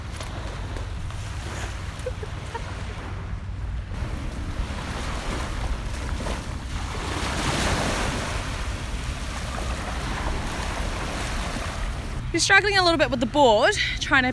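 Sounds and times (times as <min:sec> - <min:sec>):
rough ocean surf churning and splashing: 0:00.0 - 0:12.3
wind buffeting the microphone: 0:00.0 - 0:14.3
speech: 0:12.4 - 0:14.3.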